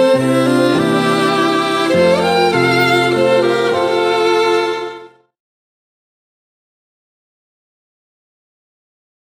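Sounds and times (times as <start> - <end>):
German waltz music: 0.0 - 5.4.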